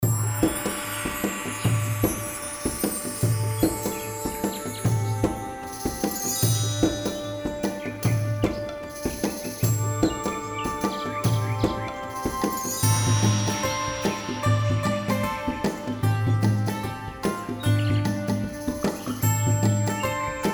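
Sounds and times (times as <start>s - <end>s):
indie groove music: 0.0s - 20.5s.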